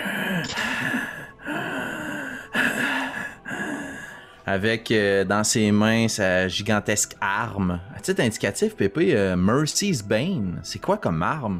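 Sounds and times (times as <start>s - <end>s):
heavy rasping asthmatic breathing inside a suit of armour: 0.0s - 4.5s
speech: 4.5s - 11.5s.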